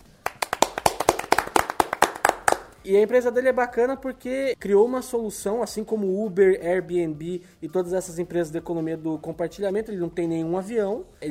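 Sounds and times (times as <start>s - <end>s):
applause: 0.0s - 2.8s
speech: 2.8s - 11.3s.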